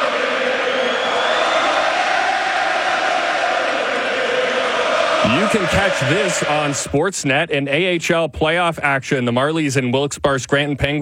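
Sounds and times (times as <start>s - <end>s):
hockey arena crowd cheering before anthems: 0.0s - 7.2s
speech: 5.3s - 10.9s.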